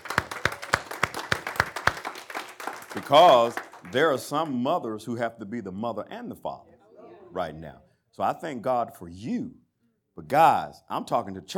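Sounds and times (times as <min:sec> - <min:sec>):
audience applauding: 0:00.0 - 0:04.6
speech: 0:03.0 - 0:06.7, 0:07.3 - 0:09.6, 0:10.2 - 0:11.5.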